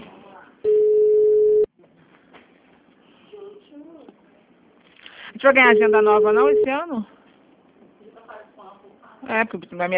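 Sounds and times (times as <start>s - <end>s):
telephone line tone during a call to a clinic: 0.7s - 1.7s, 5.7s - 6.8s
soft voices on the line: 3.1s - 6.8s
speech: 5.4s - 7.2s, 9.3s - 9.9s.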